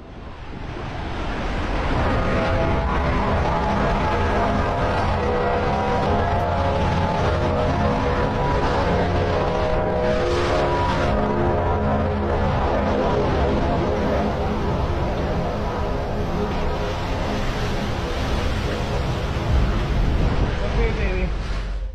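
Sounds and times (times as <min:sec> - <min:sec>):
roaring typhoon wind: 0:00.0 - 0:21.9
typhoon rain: 0:00.0 - 0:21.9
trumpet-like blare during typhoon: 0:01.8 - 0:19.1.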